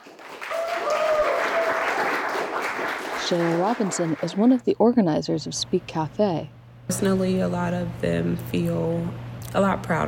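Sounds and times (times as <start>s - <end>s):
crowd applauding: 0.0s - 4.6s
crowd hooting and hollering: 0.5s - 2.4s
speech: 3.3s - 10.0s.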